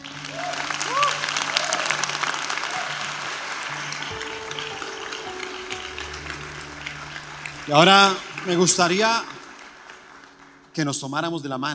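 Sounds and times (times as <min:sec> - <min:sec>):
faint tonal sounds: 0:00.0 - 0:09.5
audience applause: 0:00.0 - 0:11.3
speech: 0:07.7 - 0:09.3, 0:10.8 - 0:11.7.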